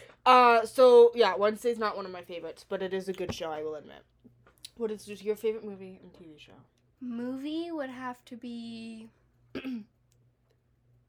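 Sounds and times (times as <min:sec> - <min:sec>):
speech: 0:00.2 - 0:04.1, 0:04.8 - 0:09.9
throat clearing: 0:09.6 - 0:09.9.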